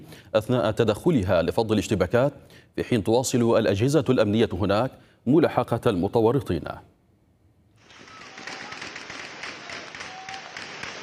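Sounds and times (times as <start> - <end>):
speech: 0.0 - 6.9
heavy gunfire: 7.8 - 11.0.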